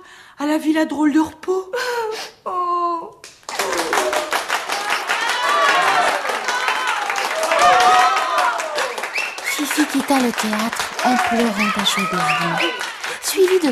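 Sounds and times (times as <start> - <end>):
speech: 0.4 - 2.7, 9.9 - 13.6
theatre audience applause: 3.4 - 13.6
voices calling out: 3.5 - 13.6.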